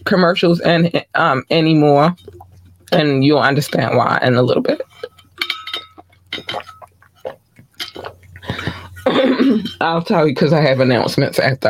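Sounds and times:
speech: 0.1s - 5.1s, 9.1s - 11.6s
water sloshing: 1.6s - 9.9s
person gulping water: 2.2s - 3.0s, 4.6s - 9.8s
glass clinking: 4.8s - 9.9s.

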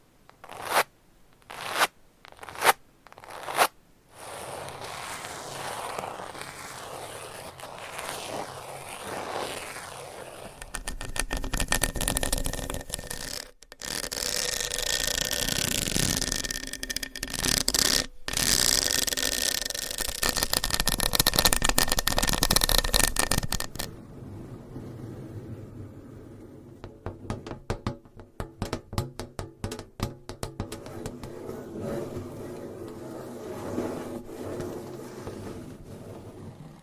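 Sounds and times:
dense bright scratching: 0.3s - 23.9s, 29.6s - 36.6s
sharp evenly spaced taps: 26.8s - 31.3s.

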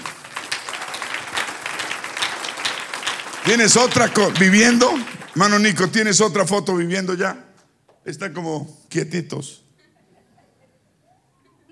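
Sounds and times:
audience applauding: 0.0s - 6.4s
speech: 3.4s - 9.6s.

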